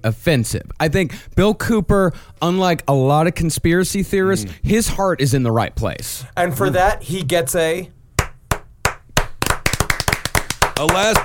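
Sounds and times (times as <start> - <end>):
speech: 0.0 - 8.0, 10.8 - 11.2
hand clapping: 8.2 - 11.2.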